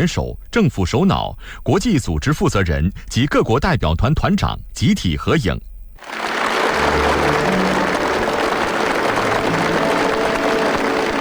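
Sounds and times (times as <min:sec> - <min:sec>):
speech: 0:00.0 - 0:06.2
warm sustained applause from a large crowd: 0:06.0 - 0:11.1.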